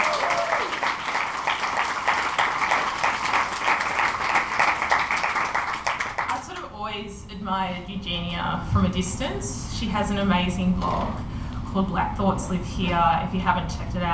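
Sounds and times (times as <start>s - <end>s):
audience clapping: 0.0s - 6.6s
speech: 7.6s - 14.1s.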